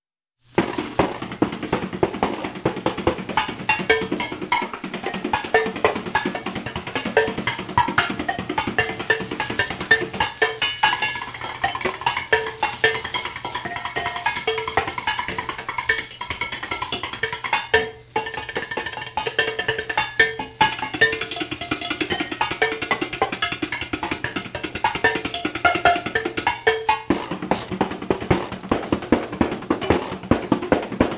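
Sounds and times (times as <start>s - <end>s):
washboard rhythm: 0.4s - 31.1s.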